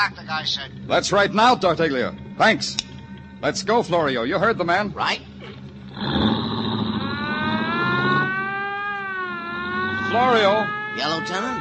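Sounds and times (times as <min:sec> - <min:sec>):
speech: 0:00.0 - 0:06.4, 0:10.1 - 0:11.5
police car siren: 0:06.4 - 0:11.5.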